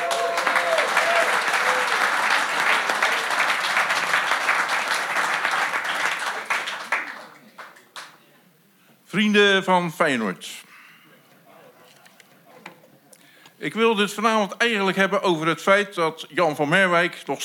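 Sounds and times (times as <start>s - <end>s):
audience applause: 0.0s - 8.2s
speech: 9.2s - 10.6s, 13.6s - 17.4s.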